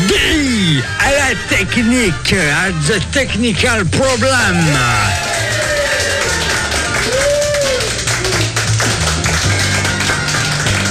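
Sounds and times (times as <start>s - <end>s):
speech: 0.1s - 5.3s
audience applause sound effect: 4.5s - 10.8s.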